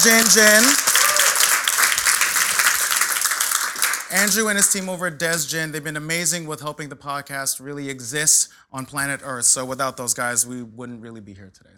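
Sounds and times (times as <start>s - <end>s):
speech: 0.0s - 0.8s, 4.1s - 11.7s
crowd applause: 0.0s - 4.9s.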